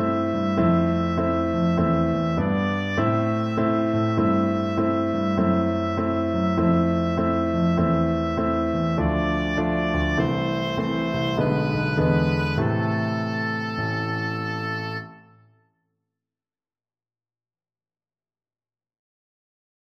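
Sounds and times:
oboe: 0:00.0 - 0:15.6.

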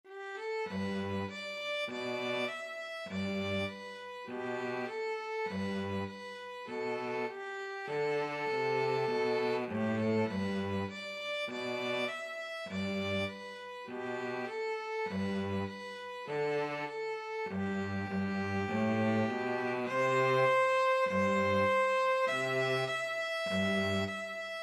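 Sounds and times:
violin and cello duet: 0:00.1 - 0:24.6.

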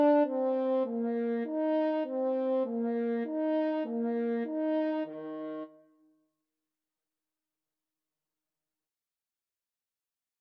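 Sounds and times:
French horn duet playing an anthem: 0:00.0 - 0:05.7.

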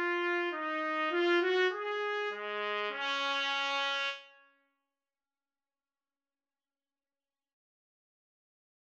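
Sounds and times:
trumpet duet playing a carol: 0:00.0 - 0:04.4.

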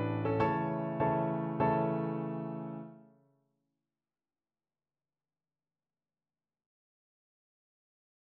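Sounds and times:
piano duet playing a prelude in A: 0:00.0 - 0:03.0.

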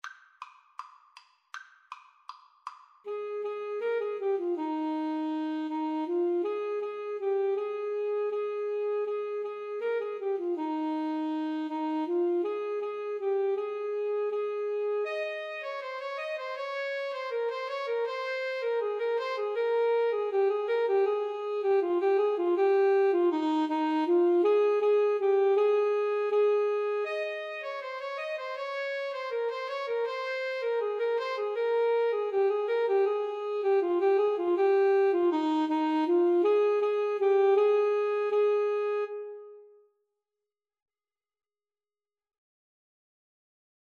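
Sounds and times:
alto saxophone duet: 0:03.1 - 0:39.8.

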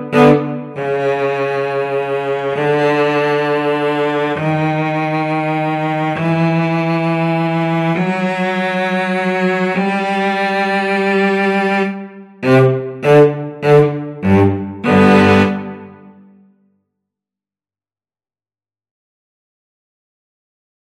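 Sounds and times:
viola and cello duet of an opera aria: 0:00.0 - 0:16.2.

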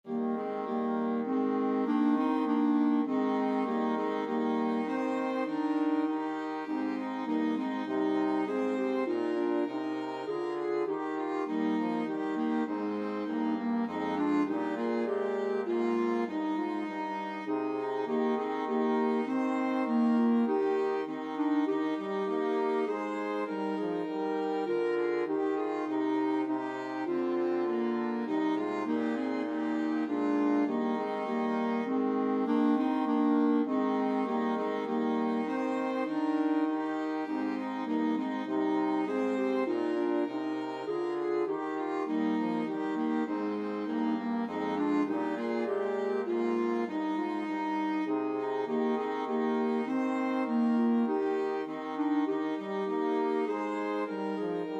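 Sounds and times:
flexible ensemble of four players: 0:00.1 - 0:54.7.

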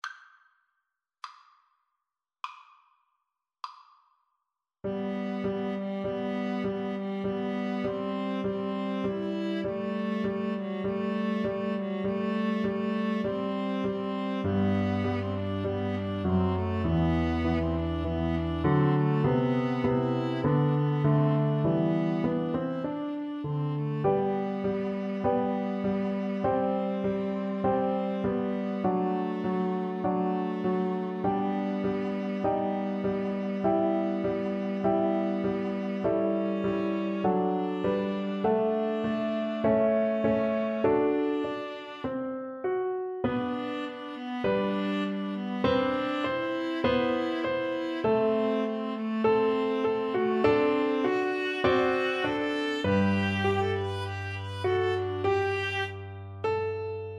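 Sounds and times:
viola: 0:04.9 - 0:42.2, 0:43.2 - 0:57.1.

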